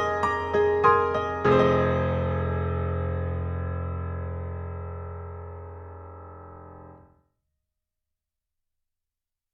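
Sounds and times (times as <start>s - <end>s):
Model D synthesizer: 0.0s - 7.1s.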